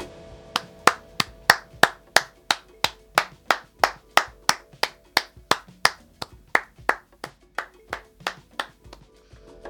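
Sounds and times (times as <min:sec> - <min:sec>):
crowd clapping in applause: 0:00.6 - 0:07.0, 0:07.6 - 0:08.8.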